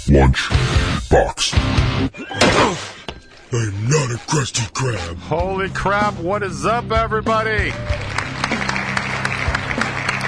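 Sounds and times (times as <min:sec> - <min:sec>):
speech: 0:00.1 - 0:03.0, 0:03.5 - 0:08.5
applause: 0:07.5 - 0:10.2.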